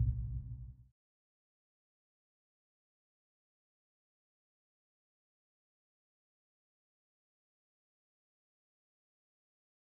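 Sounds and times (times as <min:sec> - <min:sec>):
tunnel ambience: 0:00.0 - 0:00.8.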